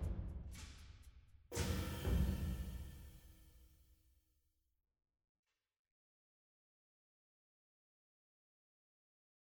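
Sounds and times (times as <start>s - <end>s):
action percussion: 0.0s - 3.5s.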